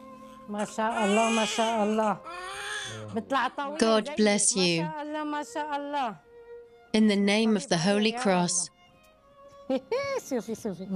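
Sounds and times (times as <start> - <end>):
newborn baby crying: 0.1 - 3.3
speech: 0.5 - 6.2, 6.9 - 8.8, 9.7 - 10.9.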